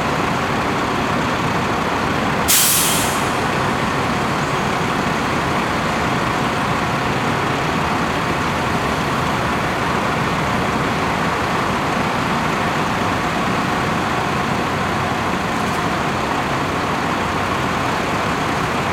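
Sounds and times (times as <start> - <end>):
bus engine idling, waiting to depart: 0.0 - 18.9
bus air brakes hissing: 2.5 - 3.8.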